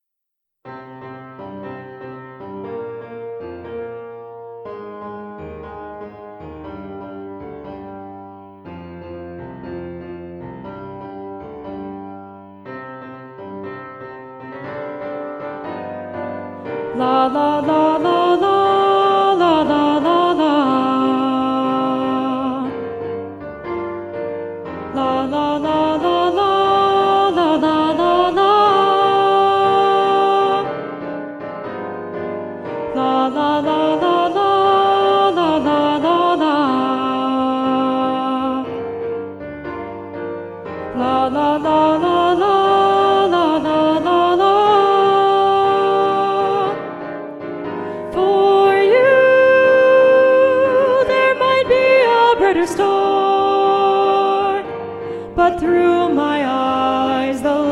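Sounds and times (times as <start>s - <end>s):
first soprano singing: 14.5s - 39.4s, 40.5s - 57.7s.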